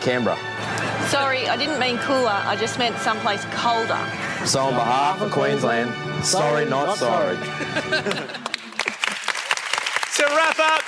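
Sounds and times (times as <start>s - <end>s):
speech: 0.0s - 8.4s
laughter: 7.0s - 9.4s
round of applause: 8.1s - 10.8s.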